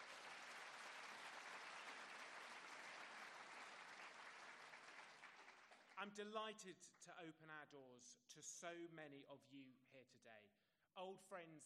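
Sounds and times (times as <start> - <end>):
audience applause: 0.0 - 6.0
speech: 6.0 - 11.6.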